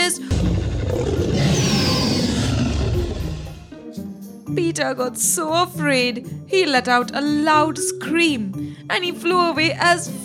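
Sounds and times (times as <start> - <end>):
dinosaur roar: 0.3 - 3.8
speech: 4.8 - 10.2.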